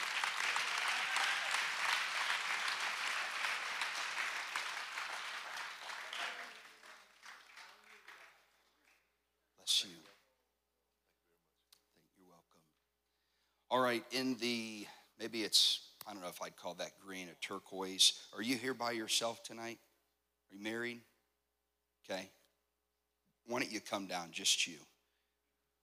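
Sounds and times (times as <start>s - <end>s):
audience applause: 0.0s - 9.0s
speech: 13.7s - 19.9s, 20.5s - 21.1s, 22.0s - 22.4s, 23.4s - 24.9s.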